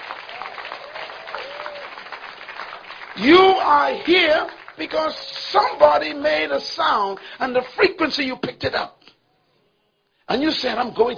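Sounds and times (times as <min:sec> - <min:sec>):
audience applauding: 0:00.0 - 0:07.8
whoops and cheers: 0:00.2 - 0:02.1
speech: 0:03.2 - 0:09.0, 0:10.3 - 0:11.1.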